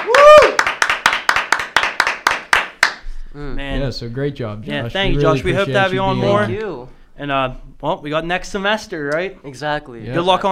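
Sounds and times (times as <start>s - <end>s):
audience clapping for a guest: 0.0s - 3.0s
speech: 3.4s - 10.5s.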